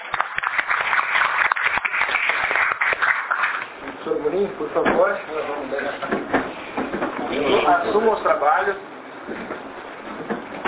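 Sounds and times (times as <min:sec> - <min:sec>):
crowd applause: 0:00.0 - 0:03.8
speech: 0:04.4 - 0:06.4, 0:07.4 - 0:09.6.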